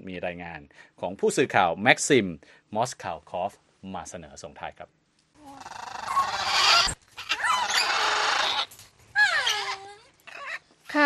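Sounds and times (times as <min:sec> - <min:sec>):
speech: 0:00.1 - 0:05.9
parrots of many species calling: 0:05.4 - 0:10.8.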